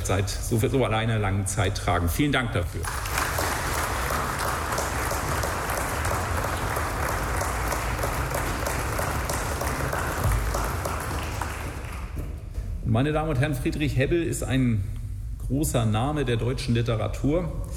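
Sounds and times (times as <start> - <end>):
speech: 0.1 - 3.2, 13.0 - 17.7
audience applause: 2.8 - 12.3.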